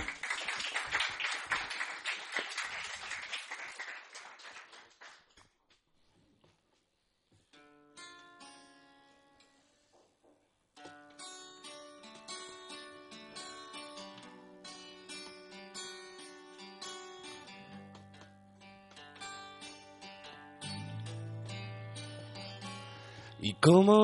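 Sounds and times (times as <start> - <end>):
crowd applause: 0.0 - 5.3
soft instrumental music with sustained tones: 10.8 - 24.0.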